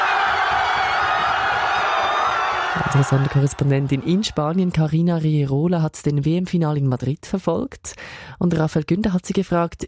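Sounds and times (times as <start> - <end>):
crowd in Madrid, Spain cheering after the final whistle of a World Cup final: 0.0 - 4.9
speech: 2.8 - 9.8.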